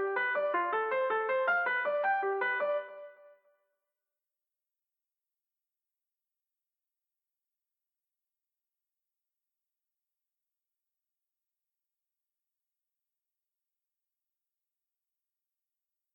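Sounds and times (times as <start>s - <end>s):
piano music from an action RPG game: 0.0s - 3.4s.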